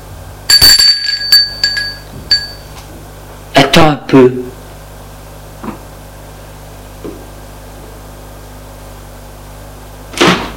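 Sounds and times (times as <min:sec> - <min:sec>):
low steady hum: 0:00.0 - 0:10.0
doorbell ringing with metallic chimes: 0:00.5 - 0:02.7
speech: 0:03.8 - 0:04.6.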